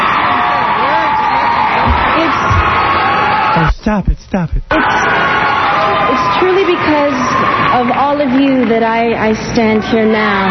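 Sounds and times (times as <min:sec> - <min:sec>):
scattered whoops: 0:00.0 - 0:03.7, 0:04.7 - 0:08.2
crowd cheering at award speech: 0:00.0 - 0:04.1, 0:04.7 - 0:10.4
speech: 0:03.8 - 0:05.1, 0:06.1 - 0:10.4.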